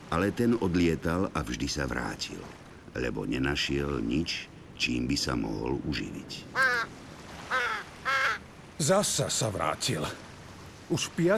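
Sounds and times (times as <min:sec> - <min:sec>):
speech: 0:00.1 - 0:07.0, 0:08.8 - 0:10.2, 0:10.9 - 0:11.3
raven cawing: 0:06.5 - 0:08.5.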